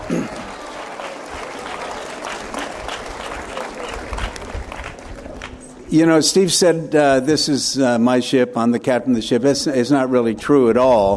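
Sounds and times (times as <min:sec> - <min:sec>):
round of applause: 0:00.0 - 0:05.7
speech: 0:00.1 - 0:00.4, 0:05.9 - 0:11.1.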